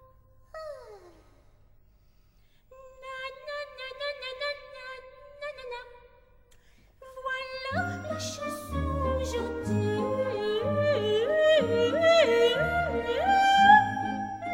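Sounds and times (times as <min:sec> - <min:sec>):
soprano singing: 0:02.7 - 0:06.1, 0:07.0 - 0:14.5.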